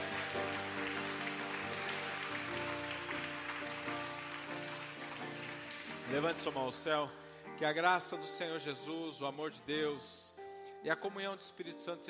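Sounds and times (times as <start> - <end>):
audience applauding: 0.0 - 6.9
speech: 6.1 - 12.0.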